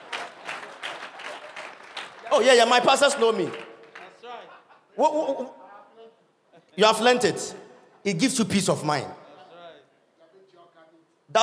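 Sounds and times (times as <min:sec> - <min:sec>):
crowd clapping: 0:00.0 - 0:04.5
speech: 0:02.3 - 0:03.7, 0:05.0 - 0:05.6, 0:06.8 - 0:09.2
laughter: 0:04.1 - 0:05.7.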